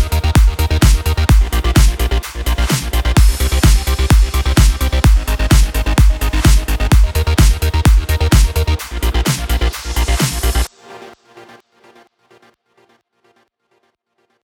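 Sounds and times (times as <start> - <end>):
electro house music: 0.0 - 13.0.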